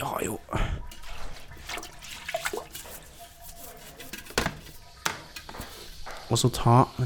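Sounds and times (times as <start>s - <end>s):
speech: 0.0s - 0.6s, 6.3s - 7.0s
toilet brush scrubbing a toilet bowl: 0.0s - 6.6s
toilet brush knocking against the toilet bowl: 0.9s - 6.2s.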